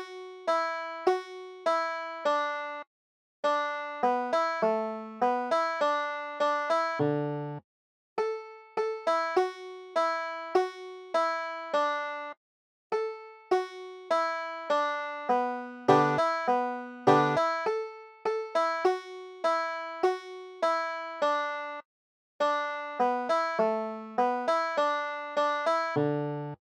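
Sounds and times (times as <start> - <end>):
banjo tune: 0.0 - 2.8, 3.4 - 7.6, 8.2 - 12.3, 13.0 - 21.8, 22.4 - 26.6.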